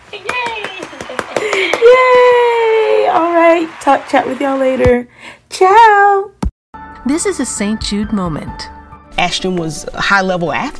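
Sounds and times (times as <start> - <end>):
hand clapping: 0.0 - 5.0
speech: 3.3 - 6.3, 7.0 - 10.7.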